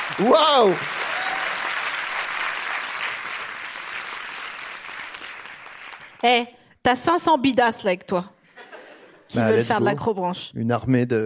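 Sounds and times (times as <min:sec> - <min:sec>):
audience applause: 0:00.0 - 0:06.2
speech: 0:00.1 - 0:01.0, 0:06.2 - 0:08.4, 0:09.3 - 0:11.2.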